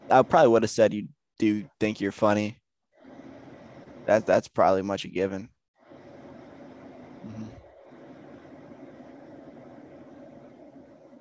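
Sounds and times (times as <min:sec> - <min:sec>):
speech: 0:00.1 - 0:02.6, 0:04.0 - 0:05.6
electric fan running near microphone: 0:03.0 - 0:04.4, 0:05.8 - 0:11.1.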